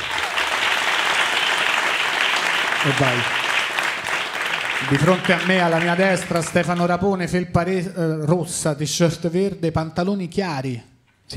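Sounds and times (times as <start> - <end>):
audience applause: 0.0 - 7.1
speech: 2.8 - 3.4, 4.8 - 11.3.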